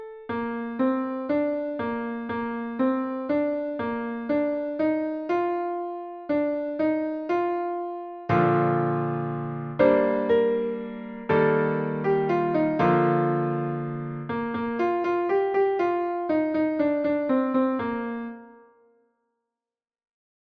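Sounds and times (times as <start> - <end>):
basic scales and triads in B flat: 0.2 - 18.6.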